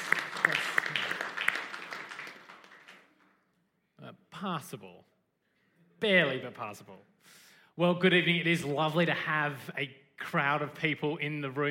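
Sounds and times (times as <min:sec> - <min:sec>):
audience clapping: 0:00.0 - 0:03.4
speech: 0:04.4 - 0:05.1, 0:06.0 - 0:07.1, 0:07.8 - 0:11.6.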